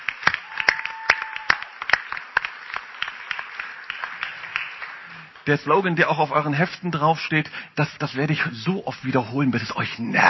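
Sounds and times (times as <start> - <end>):
hand clapping: 0.0 - 5.5
speech: 5.5 - 10.2.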